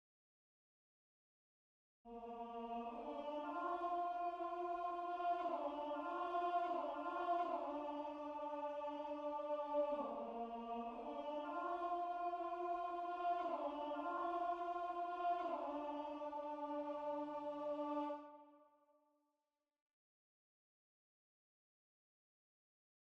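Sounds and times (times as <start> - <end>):
tenor singing: 2.1 - 18.4.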